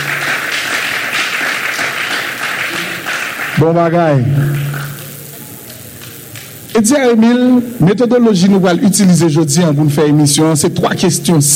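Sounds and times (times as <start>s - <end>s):
studio audience applause: 0.0s - 6.9s
speech: 3.6s - 4.7s, 6.8s - 11.5s.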